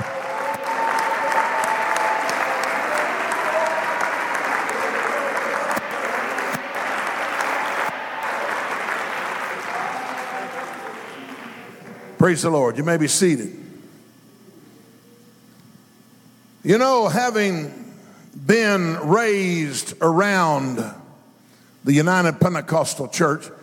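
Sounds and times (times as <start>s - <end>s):
audience clapping and shouting: 0.0s - 12.2s
speech: 12.2s - 13.7s, 16.6s - 17.8s, 18.5s - 21.0s, 21.8s - 23.6s.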